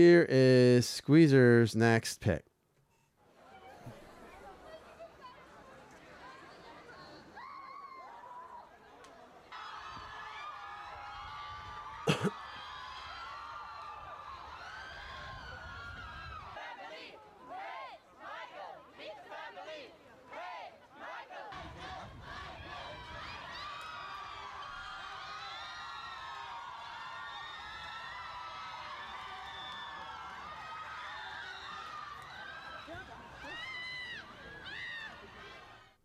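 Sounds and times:
speech: 0.0s - 2.5s
large crowd screaming: 9.5s - 16.6s, 21.6s - 35.9s.

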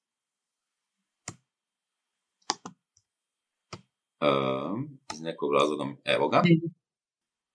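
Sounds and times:
computer mouse clicking while navigating a web page: 1.2s - 1.4s, 2.4s - 3.1s
speech: 4.2s - 6.8s.

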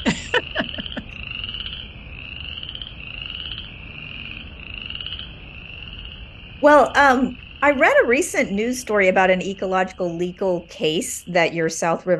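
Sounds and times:
laughter: 0.0s - 1.1s
frogs croaking in a wetland: 0.0s - 12.1s
speech: 6.6s - 12.1s.

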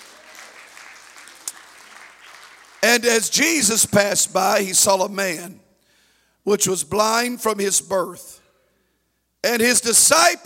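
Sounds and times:
church congregation clapping along: 0.0s - 4.6s
speech: 3.0s - 5.7s, 6.4s - 8.4s, 9.4s - 10.4s.

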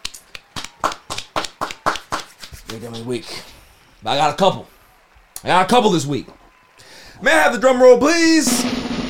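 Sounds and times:
audience applause: 0.0s - 3.2s, 3.9s - 9.0s
speech: 2.7s - 4.8s, 5.4s - 6.4s, 7.2s - 8.8s.

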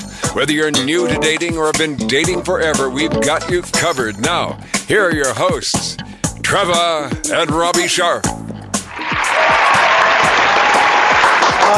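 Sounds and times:
speech: 0.4s - 8.5s
audience applause: 8.9s - 11.7s.

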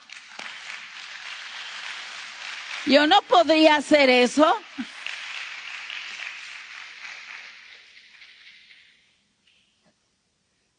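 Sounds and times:
audience applause: 0.0s - 8.6s
speech: 2.8s - 4.9s.

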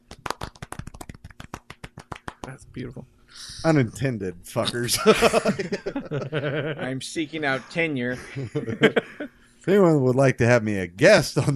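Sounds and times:
golf clap: 0.0s - 2.5s
speech: 2.5s - 11.5s
laughter: 4.7s - 9.3s.

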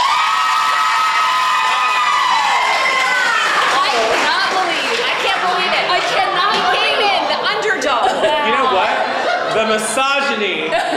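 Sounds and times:
audience applause: 0.0s - 7.3s
laughter: 6.7s - 10.9s.

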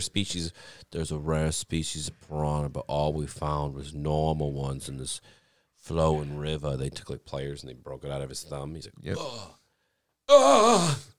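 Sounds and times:
speech: 0.0s - 9.6s, 10.3s - 11.1s
person imitating a groan of pain: 9.1s - 9.6s, 10.3s - 11.1s.

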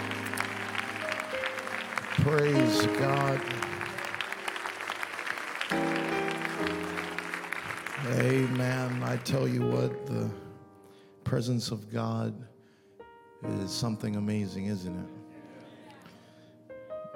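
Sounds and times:
audience clapping hands: 0.0s - 9.9s
speech: 2.2s - 3.8s, 8.1s - 10.4s, 11.3s - 12.5s, 13.4s - 15.2s.

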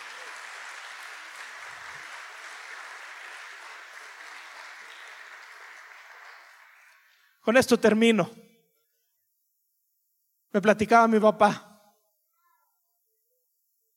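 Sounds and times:
audience applause: 0.0s - 7.3s
speech: 7.4s - 8.4s, 10.6s - 11.7s.

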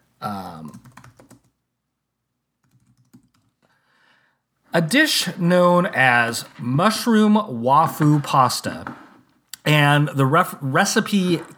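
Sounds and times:
typing on a computer keyboard into a Google search: 0.7s - 1.5s, 2.6s - 3.6s
speech: 4.7s - 9.0s, 9.7s - 11.5s.

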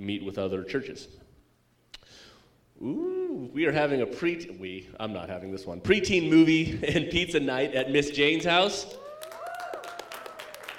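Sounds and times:
speech: 0.0s - 1.3s, 2.8s - 9.0s
audience clapping: 8.9s - 10.7s.

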